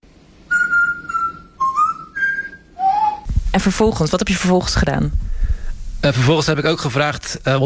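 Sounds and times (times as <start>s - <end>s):
parrot whistling a game tune: 0.5s - 3.3s
speech: 3.6s - 5.3s, 6.0s - 7.6s.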